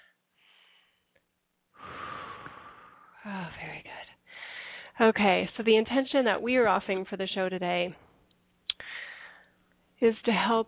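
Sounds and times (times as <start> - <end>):
deep breath at the start of a spiritual session: 0.0 - 3.3, 4.2 - 5.0, 8.8 - 9.6
speech: 3.2 - 3.9, 5.0 - 8.0, 10.0 - 10.6.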